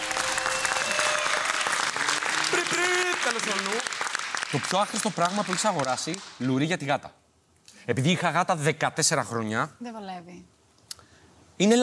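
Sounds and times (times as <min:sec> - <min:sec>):
audience applause: 0:00.0 - 0:06.4
speech: 0:02.6 - 0:07.2, 0:07.8 - 0:10.5, 0:11.6 - 0:11.8.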